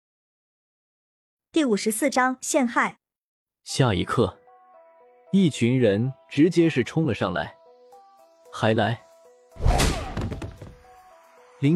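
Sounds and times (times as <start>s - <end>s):
speech: 1.5s - 3.0s, 3.7s - 4.4s, 5.3s - 7.6s, 8.5s - 9.0s, 11.6s - 11.7s
punch landing: 9.6s - 10.8s.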